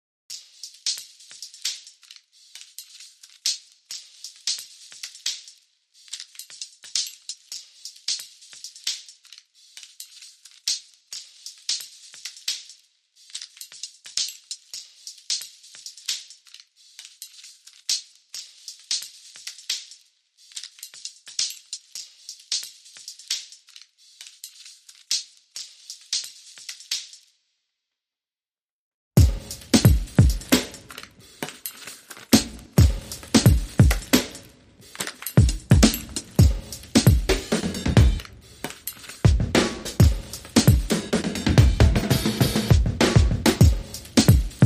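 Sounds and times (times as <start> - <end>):
drum beats: 29.2 - 44.6.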